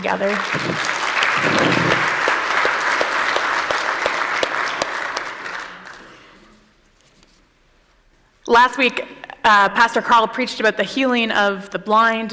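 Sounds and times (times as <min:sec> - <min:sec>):
speech: 0:00.0 - 0:01.9, 0:08.5 - 0:12.3
audience applause: 0:00.0 - 0:06.4.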